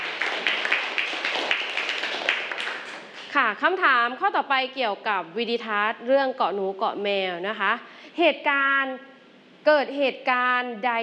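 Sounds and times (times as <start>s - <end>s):
applause: 0.0s - 3.2s
speech: 3.4s - 11.0s.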